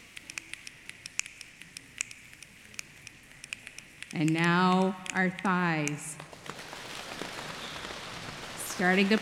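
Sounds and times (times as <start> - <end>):
many fingers snapping imitating light rain: 0.0 - 6.3
speech: 4.1 - 6.2, 8.8 - 9.1.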